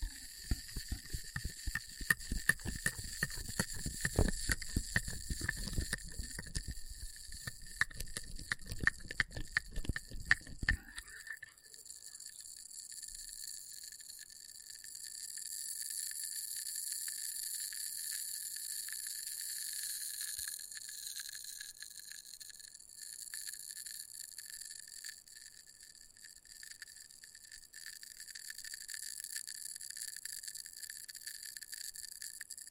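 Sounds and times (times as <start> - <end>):
test tubes crackling and rattling taps: 0.0 - 11.0.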